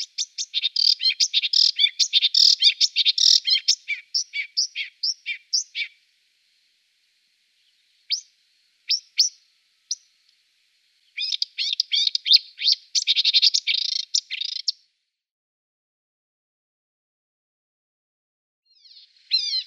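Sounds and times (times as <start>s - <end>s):
Marsh warbler song: 0.0s - 6.0s, 7.6s - 8.3s, 8.9s - 10.2s, 11.0s - 14.8s, 18.7s - 19.6s.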